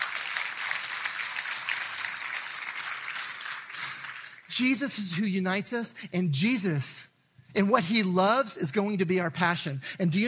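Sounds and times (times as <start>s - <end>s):
audience clapping: 0.0s - 4.8s
speech: 4.5s - 10.2s.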